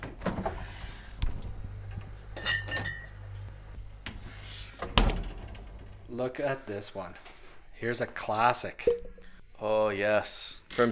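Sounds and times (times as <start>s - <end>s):
fridge door opening: 0.0s - 6.2s
bottles clinking: 2.3s - 3.2s, 8.8s - 9.4s
speech: 6.2s - 10.9s.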